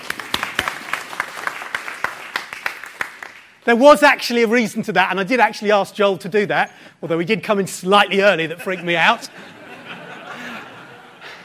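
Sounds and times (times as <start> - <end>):
audience clapping: 0.0 - 3.7
speech: 3.6 - 9.6
laughter: 8.4 - 11.4.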